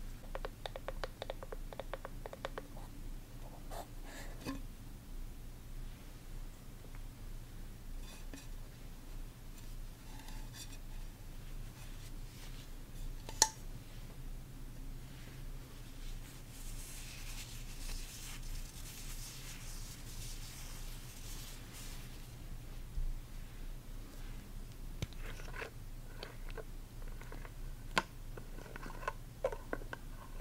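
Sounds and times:
steady low hum: 0.0s - 30.4s
skin care ASMR soft taps and clicks: 0.2s - 2.7s.

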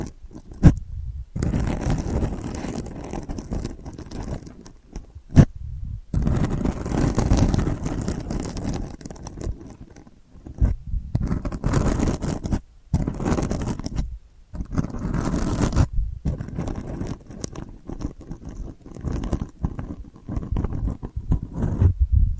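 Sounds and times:
delicate gritty scratching: 0.0s - 22.3s.

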